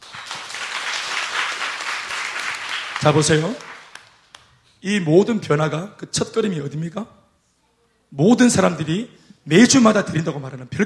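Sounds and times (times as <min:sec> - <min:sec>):
audience applauding: 0:00.0 - 0:04.5
speech: 0:03.0 - 0:03.7, 0:04.8 - 0:07.2, 0:08.1 - 0:10.8.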